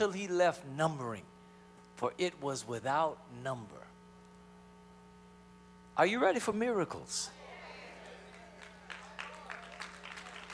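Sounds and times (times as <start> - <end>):
speech: 0.0 - 1.3, 2.0 - 3.9, 6.0 - 7.4
weak audience clapping: 7.6 - 10.5.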